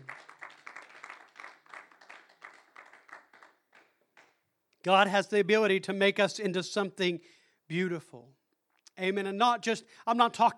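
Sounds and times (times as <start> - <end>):
congregation hand clapping in praise: 0.0 - 4.5
speech: 4.8 - 8.4, 9.0 - 10.5.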